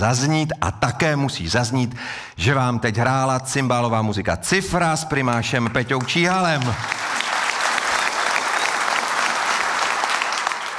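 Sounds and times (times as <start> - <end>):
speech: 0.0 - 7.2
audience applause: 5.5 - 10.7.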